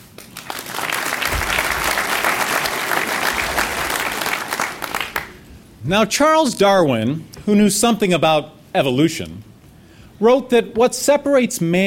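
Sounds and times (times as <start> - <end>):
audience applause: 0.0 - 5.5
speech: 5.9 - 9.5, 10.2 - 11.8.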